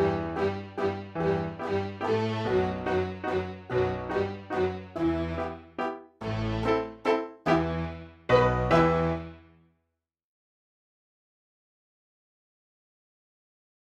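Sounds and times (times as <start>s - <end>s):
waltz music: 0.0s - 9.6s.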